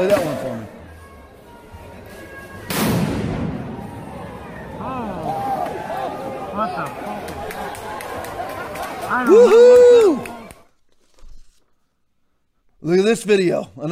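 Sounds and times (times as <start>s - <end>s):
protest crowd shouting and chatter: 0.0s - 10.8s
bomb going off at a protest in Portland, Oregon: 2.7s - 5.4s
speech: 9.2s - 9.7s, 12.9s - 13.8s.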